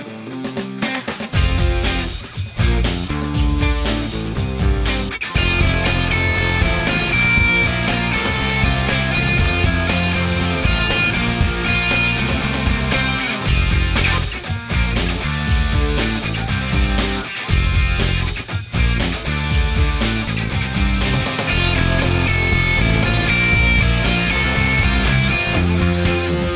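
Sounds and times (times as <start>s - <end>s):
rhythm: 0.3s - 26.5s.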